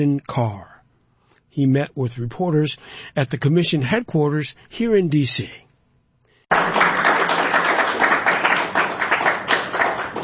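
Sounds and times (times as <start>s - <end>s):
speech: 0.0s - 0.7s, 1.6s - 5.7s
smattering of applause: 6.5s - 10.2s.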